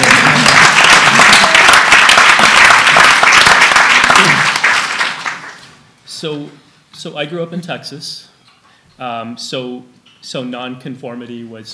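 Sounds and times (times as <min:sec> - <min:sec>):
audience applause: 0:00.0 - 0:05.7
speech: 0:06.2 - 0:08.3, 0:09.0 - 0:11.7.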